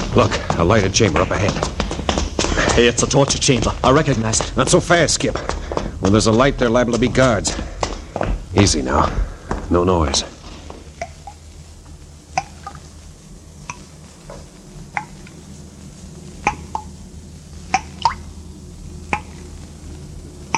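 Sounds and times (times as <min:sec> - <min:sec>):
speech: 0:00.1 - 0:01.7, 0:02.7 - 0:07.7, 0:08.5 - 0:10.3
water dripping in a stone chamber: 0:10.9 - 0:15.4, 0:16.4 - 0:20.5.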